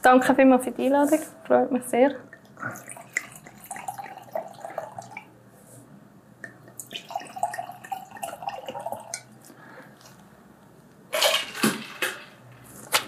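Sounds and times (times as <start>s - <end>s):
speech: 0.0s - 3.0s
white wine poured into glasses: 2.8s - 5.3s, 6.8s - 9.4s.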